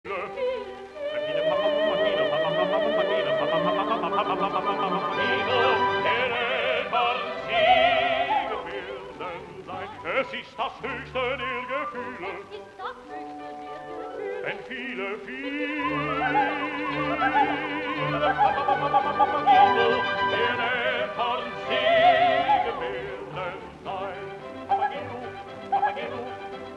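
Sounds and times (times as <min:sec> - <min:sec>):
flute duet: 0:00.3 - 0:26.7.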